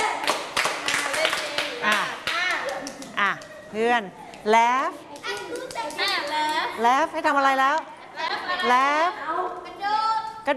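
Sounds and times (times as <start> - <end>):
group clapping hands on command in a game: 0.0 - 3.6, 5.1 - 6.9
speech: 3.7 - 7.8, 8.6 - 9.2.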